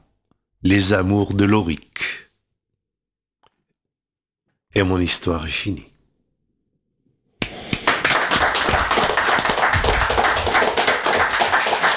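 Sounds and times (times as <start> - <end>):
speech: 0.6 - 1.9, 4.7 - 5.9
hands clapping: 7.4 - 11.9.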